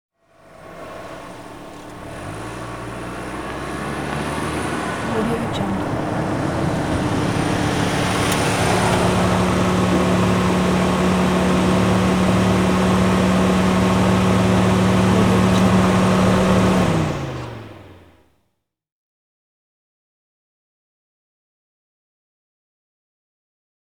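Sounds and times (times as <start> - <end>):
sedan chase maneuver: 0.3 - 18.2.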